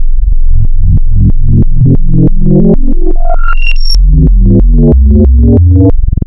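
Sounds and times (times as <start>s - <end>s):
frequency modulation sine wavetable synthesizer tone: 0.0s - 6.2s.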